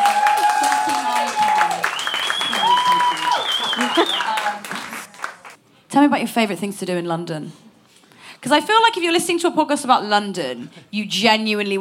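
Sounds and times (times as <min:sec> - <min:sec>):
round of applause: 0:00.0 - 0:05.6
high sustained whistling tones: 0:01.8 - 0:04.4
speech: 0:06.0 - 0:07.6, 0:08.4 - 0:11.7.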